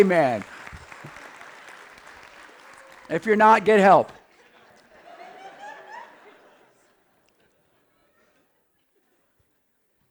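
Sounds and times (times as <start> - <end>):
speech: 0.0 - 0.5, 3.1 - 4.2
audience applause: 0.0 - 3.8
laughter: 4.3 - 8.6.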